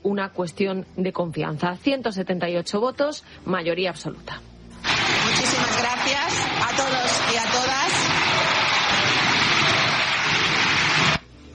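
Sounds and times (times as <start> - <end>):
speech: 0.0 - 4.5
applause in parliament: 4.9 - 11.2
shouting in parliament: 5.6 - 11.0.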